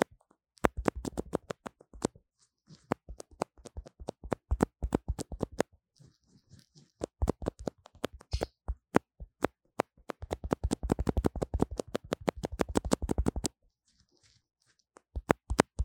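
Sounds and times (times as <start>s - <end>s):
tapping on a lo-fi microphone: 0.6s - 5.7s, 7.0s - 13.5s, 15.1s - 15.8s
scratching on a lo-fi microphone: 0.6s - 15.8s.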